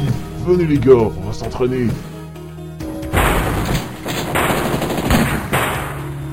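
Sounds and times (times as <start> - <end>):
speech: 0.4 - 2.1
gunfire from pistols and machine guns: 3.1 - 6.2.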